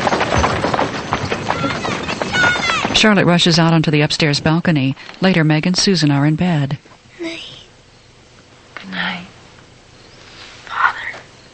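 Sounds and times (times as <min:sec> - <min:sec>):
horse hooves clip-clopping pulling a wagon onto a plantation: 0:00.0 - 0:07.0
speech: 0:03.0 - 0:06.9.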